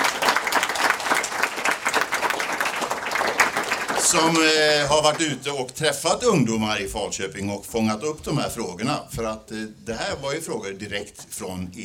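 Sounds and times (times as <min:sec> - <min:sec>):
audience applause: 0:00.0 - 0:05.4
speech: 0:04.1 - 0:11.8.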